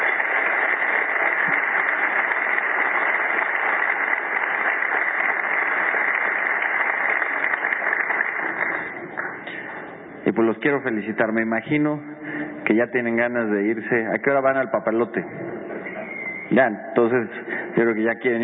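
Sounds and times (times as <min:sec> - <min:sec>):
audience applauding teachers: 0:00.0 - 0:10.0, 0:14.3 - 0:18.4
speech: 0:10.4 - 0:15.6, 0:16.5 - 0:18.4.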